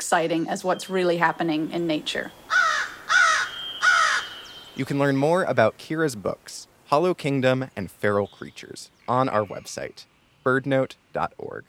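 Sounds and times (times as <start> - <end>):
faint steady tone: 0.0 - 2.5, 3.4 - 11.6
speech: 0.1 - 2.5, 4.8 - 11.6
crow giving rasping caws: 2.5 - 4.6.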